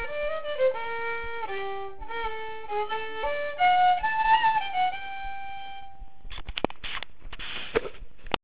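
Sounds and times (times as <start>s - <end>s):
polska dance tune: 0.0s - 6.0s.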